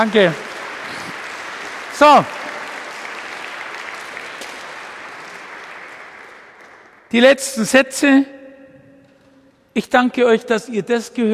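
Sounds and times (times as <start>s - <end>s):
speech: 0.0s - 0.5s, 2.0s - 2.4s, 7.1s - 8.3s, 9.8s - 11.3s
audience applause: 0.0s - 7.1s.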